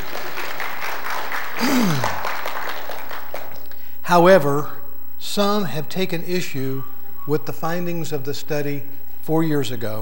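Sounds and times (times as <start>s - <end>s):
audience applause: 0.0s - 3.6s
speech: 4.1s - 10.0s.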